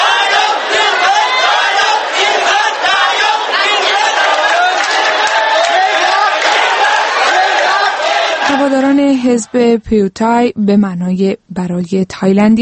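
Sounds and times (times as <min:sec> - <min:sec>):
crowd shouting victory cries: 0:00.0 - 0:09.4
speech: 0:08.7 - 0:12.6.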